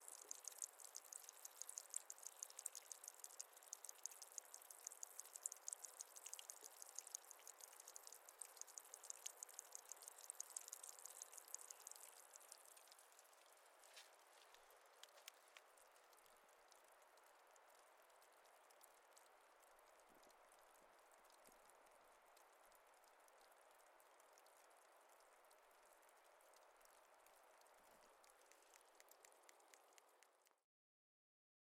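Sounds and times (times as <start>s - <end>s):
light trickle of water: 0.0s - 30.6s.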